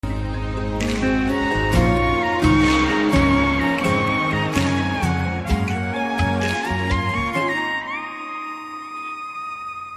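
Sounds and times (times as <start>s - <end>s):
Telugu love background music ringtone: 0.0s - 9.9s.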